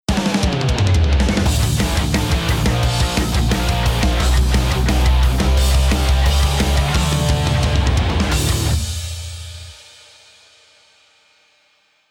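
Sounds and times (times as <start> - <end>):
musical riff: 0.1 - 8.9.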